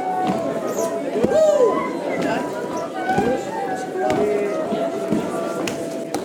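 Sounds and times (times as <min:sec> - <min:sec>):
bal flute: 0:00.0 - 0:06.1.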